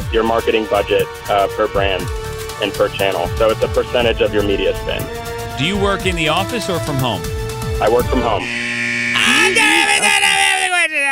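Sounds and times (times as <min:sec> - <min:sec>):
speech: 0:00.1 - 0:08.7
buzzer going off: 0:07.2 - 0:10.3.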